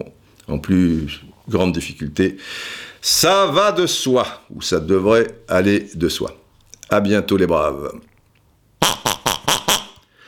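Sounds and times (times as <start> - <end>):
speech: 0.0 - 8.1
squeaky toy pig squeezed as jingle: 8.8 - 10.0.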